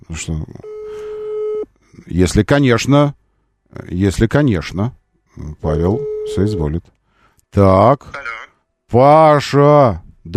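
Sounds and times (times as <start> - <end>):
speech: 0.1 - 1.2, 2.0 - 10.3
telephone ringing tone while placing a call: 5.9 - 6.7.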